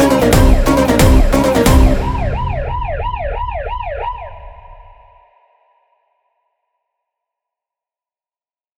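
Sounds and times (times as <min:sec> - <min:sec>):
instrumental music: 0:00.0 - 0:04.5.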